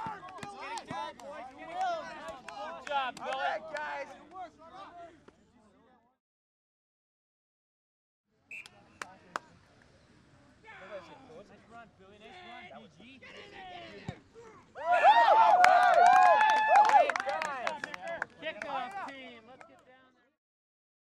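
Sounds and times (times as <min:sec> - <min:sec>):
amateur American football game: 0:00.0 - 0:05.6, 0:10.2 - 0:19.8.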